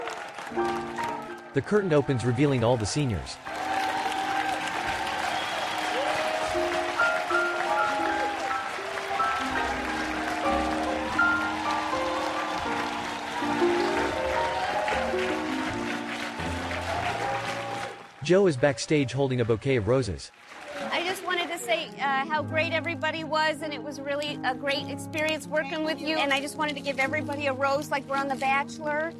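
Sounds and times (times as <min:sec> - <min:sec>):
audience applause: 0:00.0 - 0:22.0
speech: 0:00.5 - 0:03.6, 0:18.3 - 0:20.4, 0:22.0 - 0:29.1.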